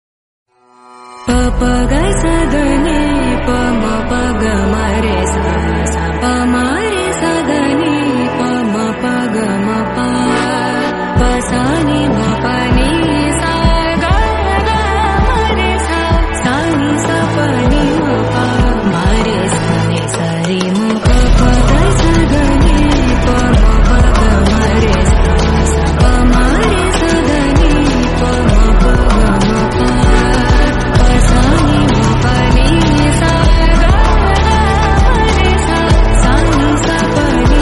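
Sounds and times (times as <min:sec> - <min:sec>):
Tamil song as background music: 0:00.6 - 0:37.6.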